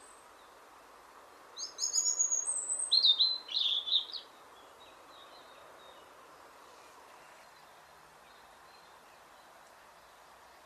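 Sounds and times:
European robin singing a thin, high warbling phrase: 1.4 - 10.6.

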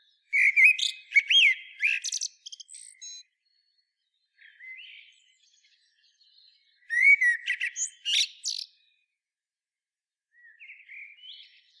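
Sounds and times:
common blackbird Turdus merula singing: 0.0 - 9.0, 10.3 - 11.7.

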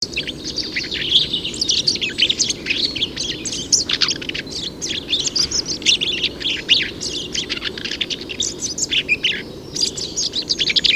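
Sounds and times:
Eurasian blackcap chirping: 0.0 - 10.9.

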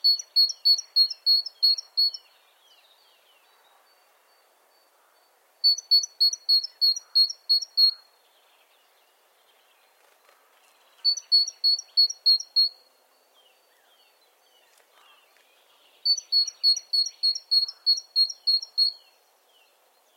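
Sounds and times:
great tit singing: 0.0 - 2.4, 4.3 - 8.2, 10.8 - 19.2
small birds chipping: 0.0 - 3.7, 4.4 - 20.1.

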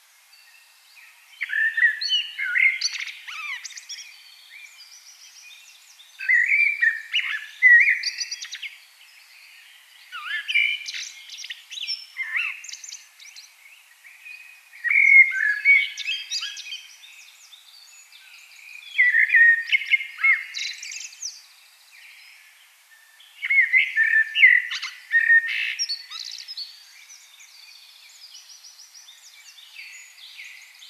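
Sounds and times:
common blackbird song: 0.0 - 30.8.

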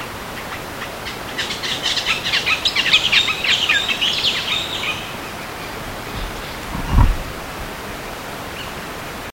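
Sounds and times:
bird chirping: 0.4 - 7.4
low thump: 6.1 - 7.4.

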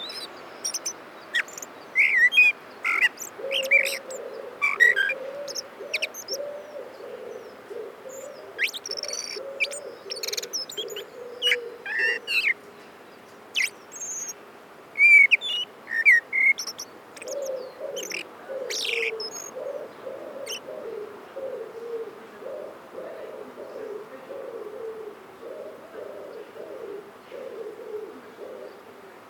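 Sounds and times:
Turdus merula singing: 0.0 - 12.6, 13.6 - 14.4, 15.0 - 21.6.

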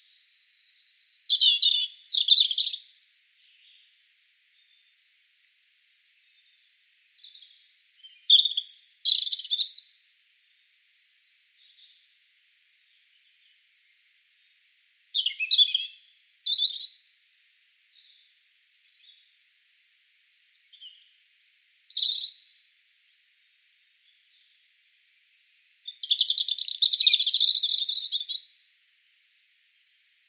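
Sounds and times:
European robin singing: 0.0 - 5.4, 6.2 - 10.2, 15.1 - 17.0, 20.6 - 22.5, 23.4 - 28.5.

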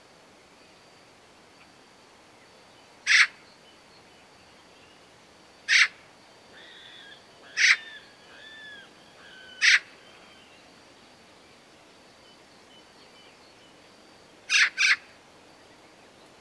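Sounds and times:
Eurasian magpie harsh rasping calls, Pica pica: 7.6 - 8.0, 9.6 - 9.9.

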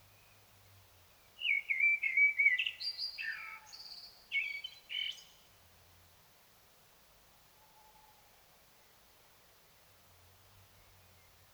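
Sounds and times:
Common blackbird singing: 1.4 - 5.3.

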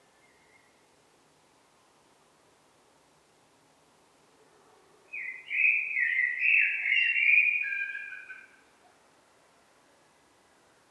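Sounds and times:
common blackbird song: 0.1 - 0.8, 5.1 - 8.6.

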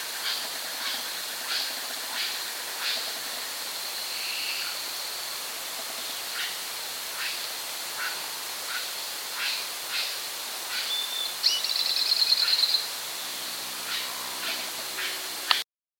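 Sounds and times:
steady hiss: 0.0 - 15.6
bird chirps and trill: 10.8 - 12.9.

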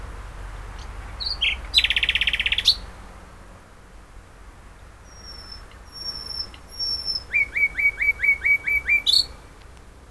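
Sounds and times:
common nightingale song: 0.7 - 3.0, 4.8 - 9.7.

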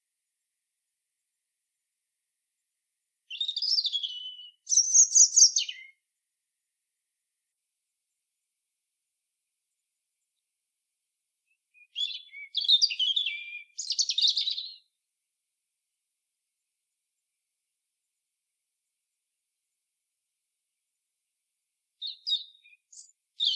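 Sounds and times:
European robin singing: 3.3 - 6.0, 11.5 - 15.0, 22.0 - 23.5.

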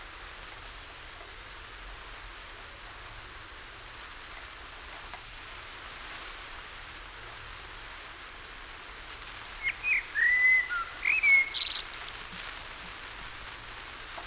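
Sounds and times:
Common blackbird Turdus merula fluty whistled song: 9.6 - 12.4.

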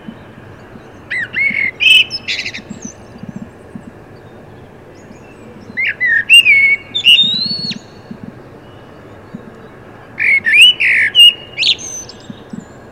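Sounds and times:
common blackbird Turdus merula singing: 0.0 - 12.9.

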